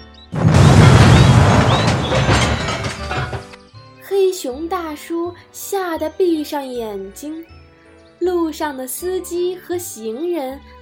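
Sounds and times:
car crashing into a truck: 0:00.4 - 0:03.6
speech: 0:04.4 - 0:07.6, 0:08.2 - 0:10.7.

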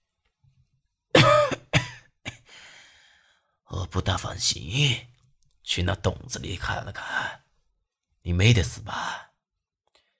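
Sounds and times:
old man coughing: 0:01.1 - 0:02.5
speech: 0:03.9 - 0:07.4, 0:08.2 - 0:09.3.

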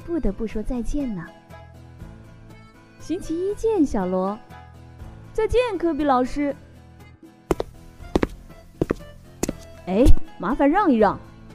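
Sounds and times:
speech: 0:00.1 - 0:01.4, 0:03.0 - 0:04.5, 0:05.4 - 0:06.6, 0:09.9 - 0:11.3
heavy stomping footsteps: 0:07.5 - 0:09.8.

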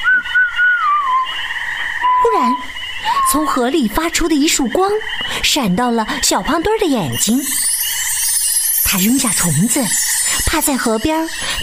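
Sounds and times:
cheerful whistling: 0:00.0 - 0:01.4, 0:02.0 - 0:03.6, 0:07.2 - 0:11.6
speech: 0:03.3 - 0:07.7, 0:08.9 - 0:11.6.

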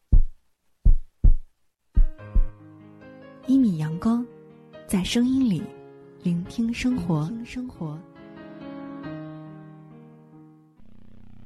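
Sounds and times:
heartbeat of deep thuds: 0:00.0 - 0:02.6
speech: 0:03.6 - 0:04.3, 0:04.9 - 0:08.1.

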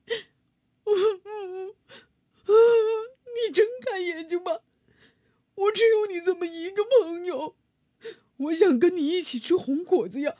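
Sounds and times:
voice acting a Tyrannosaurus crying in a children's dinosaur story: 0:00.9 - 0:01.8
speech: 0:04.1 - 0:04.7, 0:05.7 - 0:07.6, 0:08.4 - 0:10.3.

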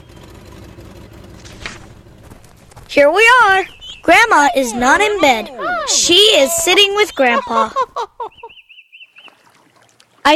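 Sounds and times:
car engine starting: 0:00.0 - 0:05.4
speech: 0:02.9 - 0:08.1
laughter: 0:04.5 - 0:08.6.

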